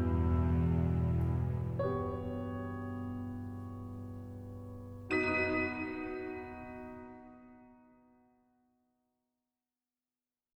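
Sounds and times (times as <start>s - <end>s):
romantic-style piano piece: 0.0s - 8.0s.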